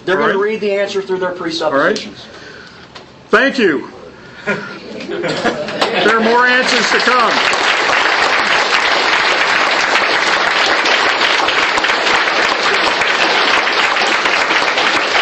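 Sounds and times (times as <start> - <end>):
speech: 0.0 - 2.4, 3.3 - 7.6
laughter: 4.3 - 7.5
audience applause: 5.6 - 15.1.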